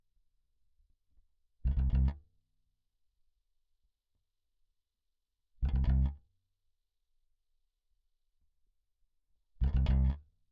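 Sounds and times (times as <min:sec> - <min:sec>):
bass: 0:01.6 - 0:02.4, 0:05.6 - 0:06.4, 0:09.6 - 0:10.4.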